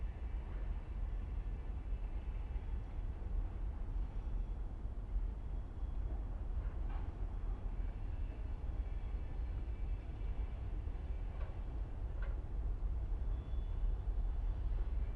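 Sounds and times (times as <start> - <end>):
train passing by a harbor mole: 0.0 - 15.1.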